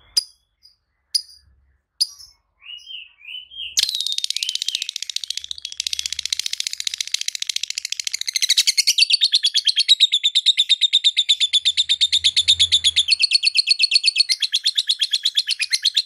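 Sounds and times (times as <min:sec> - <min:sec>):
lovebird song with buzzy chattering trill: 0:00.0 - 0:16.0.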